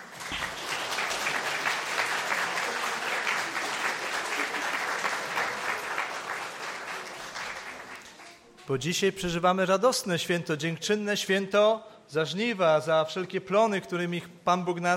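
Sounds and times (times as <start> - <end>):
audience applause: 0.0 - 8.4
speech: 8.7 - 14.9.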